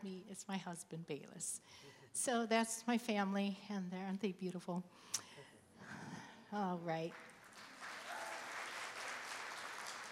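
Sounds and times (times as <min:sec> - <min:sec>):
speech: 0:00.0 - 0:07.3
audience clapping: 0:07.0 - 0:10.0.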